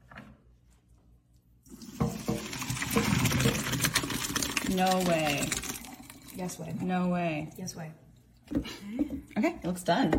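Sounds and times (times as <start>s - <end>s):
water poured from a pot through a strainer in the sink: 1.7s - 7.1s
speech: 4.7s - 5.6s, 6.4s - 8.0s, 8.6s - 10.1s.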